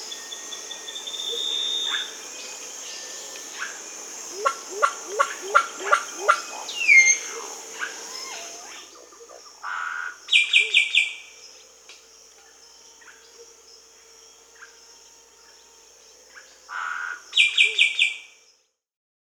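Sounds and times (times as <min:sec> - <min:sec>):
solitary cacique calling: 0:00.8 - 0:02.5, 0:03.5 - 0:11.8, 0:16.3 - 0:18.3.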